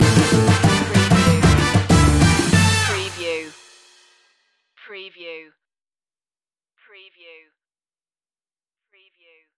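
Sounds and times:
Latin Spanish music stinger: 0:00.0 - 0:04.1.

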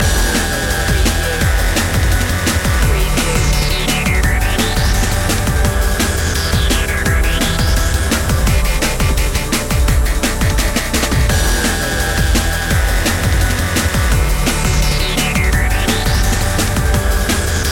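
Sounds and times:
drum and bass loop: 0:00.0 - 0:17.7.

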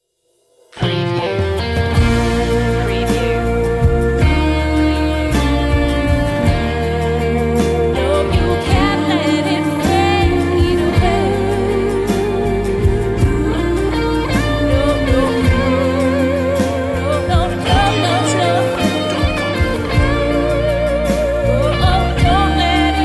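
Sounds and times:
vocal music: 0:00.8 - 0:23.0.

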